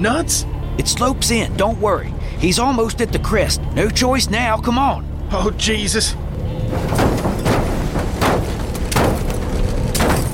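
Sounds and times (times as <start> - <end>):
speech: 0.0 - 7.1
vehicle lurching down a rough slope into a gully: 0.0 - 10.3
vehicle jolting and bottoming out: 6.4 - 10.3.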